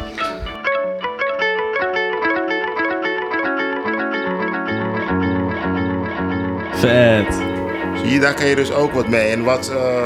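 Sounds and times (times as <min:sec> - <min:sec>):
effects pedal looping a short melodic phrase: 0:00.0 - 0:10.0
speech: 0:06.8 - 0:10.0.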